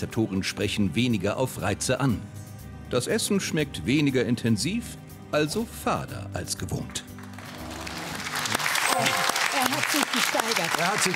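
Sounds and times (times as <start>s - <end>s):
speech: 0.0s - 7.1s, 9.9s - 11.1s
audience applause: 7.2s - 11.1s.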